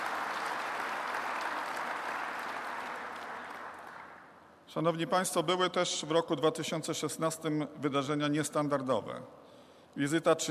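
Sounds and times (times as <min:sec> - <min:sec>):
audience applause: 0:00.0 - 0:04.3
speech: 0:04.7 - 0:09.4, 0:10.0 - 0:10.4.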